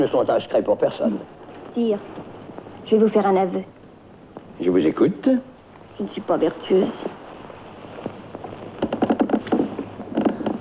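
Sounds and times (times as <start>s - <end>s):
speech: 0.0s - 2.3s, 2.9s - 3.8s, 4.6s - 7.1s
bed springs creaking: 7.9s - 10.6s.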